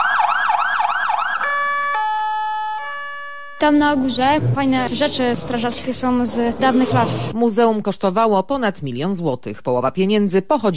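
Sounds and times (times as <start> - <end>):
fire engine siren as firefighters drive to a fire: 0.0 - 4.5
speech: 3.6 - 10.7.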